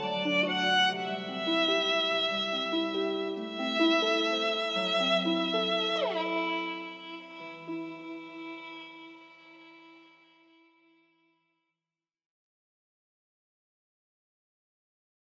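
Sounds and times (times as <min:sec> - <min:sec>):
violin: 0:00.0 - 0:11.4.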